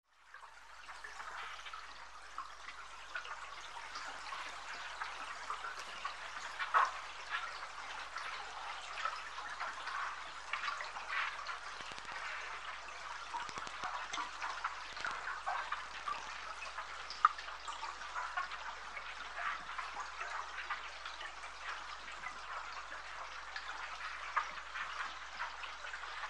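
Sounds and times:
underwater ambience at the confluence in Peru: 0.6s - 26.2s.

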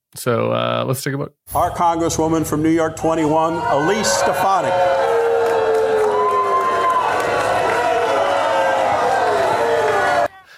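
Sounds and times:
speech: 0.2s - 5.2s
crowd booing: 3.0s - 10.4s.

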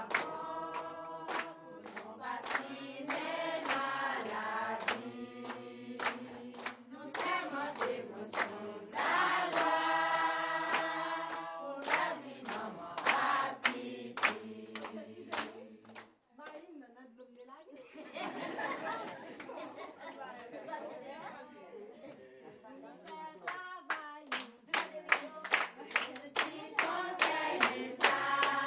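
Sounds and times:
midwives class singing at the Tienne dispensary: 0.0s - 16.1s, 25.7s - 28.6s
laughter: 17.8s - 23.0s.

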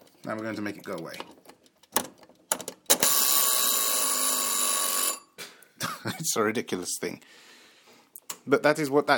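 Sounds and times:
speech: 0.2s - 1.4s, 6.0s - 7.5s, 8.5s - 9.1s
oven timer bell ringing: 3.0s - 5.4s.

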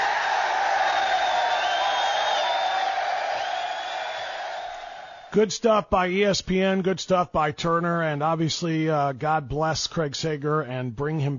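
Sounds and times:
round of applause and cheering: 0.0s - 5.4s
speech: 5.4s - 11.3s.

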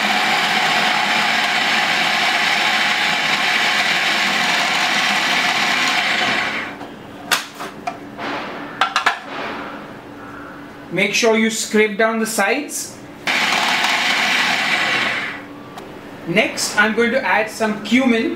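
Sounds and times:
blender blitzing chickpeas: 0.0s - 6.8s, 13.3s - 15.4s
speech: 11.0s - 13.0s, 16.3s - 18.3s.

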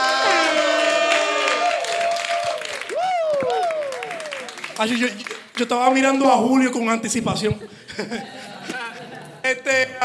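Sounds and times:
audience applause: 0.0s - 5.7s
speech: 4.8s - 8.4s, 9.5s - 10.0s
laughter: 7.5s - 9.7s.

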